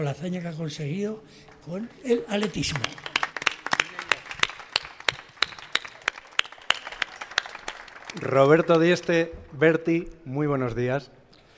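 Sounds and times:
speech: 0:00.0 - 0:03.1, 0:08.2 - 0:11.2
audience applause: 0:01.6 - 0:09.0.

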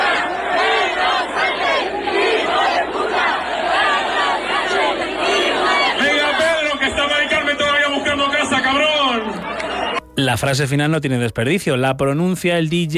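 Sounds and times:
large festival crowd chanting and shouting: 0:00.0 - 0:10.1
speech: 0:10.3 - 0:12.9.

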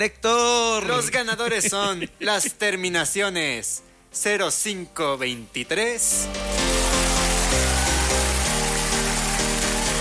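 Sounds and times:
speech: 0:00.0 - 0:06.7
applause: 0:06.4 - 0:09.9.

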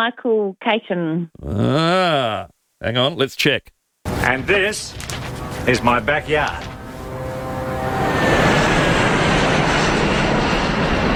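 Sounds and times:
speech: 0:00.0 - 0:06.7
Airbus airliner roaring low over a backyard past the runway: 0:06.7 - 0:11.1.

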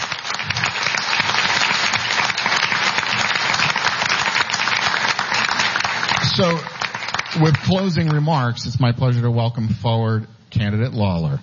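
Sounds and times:
audience applause: 0:00.0 - 0:08.5
speech: 0:06.4 - 0:11.4.

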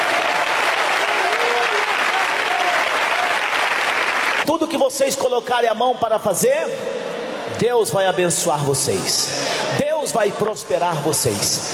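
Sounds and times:
audience clapping hands: 0:00.0 - 0:04.5
speech: 0:04.5 - 0:11.7.

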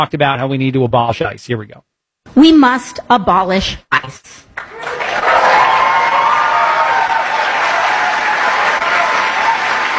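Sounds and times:
speech: 0:00.0 - 0:05.4
large crowd applauding: 0:04.6 - 0:09.9.

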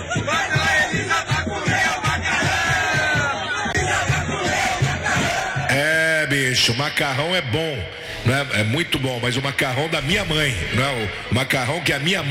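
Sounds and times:
stadium fans chanting: 0:00.0 - 0:06.1
speech: 0:06.6 - 0:12.2.

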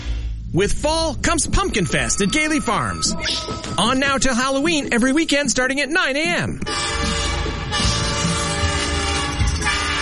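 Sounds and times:
speech: 0:00.5 - 0:07.1
train horn blaring: 0:06.7 - 0:10.0.

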